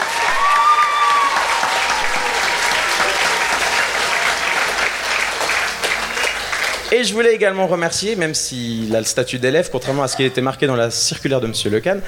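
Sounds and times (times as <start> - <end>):
audience applause: 0.0 - 6.9
speech: 6.9 - 12.0.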